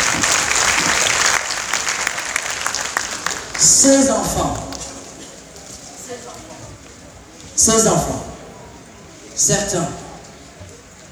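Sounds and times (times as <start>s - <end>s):
audience applause: 0.0s - 6.5s
speech: 3.8s - 4.6s, 7.6s - 8.3s, 9.4s - 10.0s.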